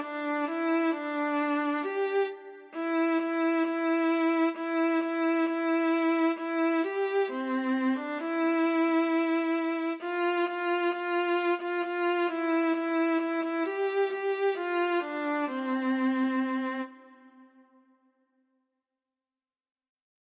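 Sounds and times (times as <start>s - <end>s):
solo Christmas song: 0.0s - 18.1s.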